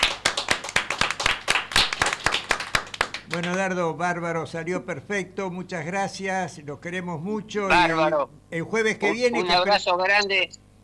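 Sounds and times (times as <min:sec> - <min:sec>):
applause: 0:00.0 - 0:03.7
speech: 0:03.3 - 0:10.6.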